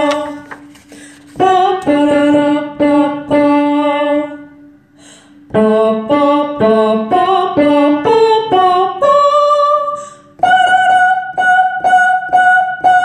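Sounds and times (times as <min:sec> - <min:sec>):
soprano singing an opera coda: 0:01.4 - 0:04.5, 0:05.5 - 0:13.0.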